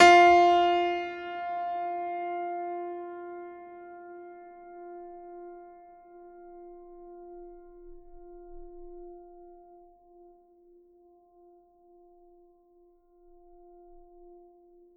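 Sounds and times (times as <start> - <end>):
classical piano note F3: 0.0 - 10.4.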